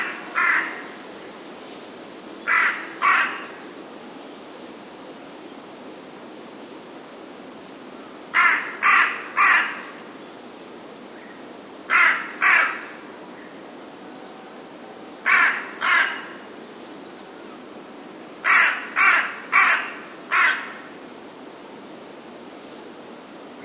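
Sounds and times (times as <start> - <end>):
carrion crow cawing: 0.0 - 1.0, 2.5 - 3.6, 8.4 - 9.9, 11.9 - 13.0, 15.2 - 16.4, 18.4 - 20.8.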